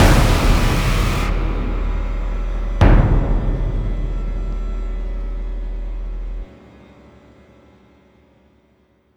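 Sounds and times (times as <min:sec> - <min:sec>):
ambient sting: 0:00.0 - 0:06.5.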